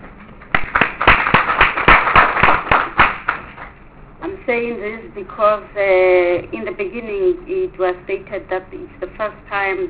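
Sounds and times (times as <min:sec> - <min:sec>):
audience clapping: 0:00.5 - 0:03.7
speech: 0:04.5 - 0:09.8.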